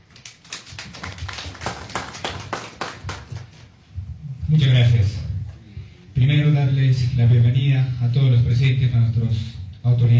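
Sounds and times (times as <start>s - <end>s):
audience applause: 0.2s - 3.6s
speech: 4.5s - 5.2s, 6.2s - 10.1s.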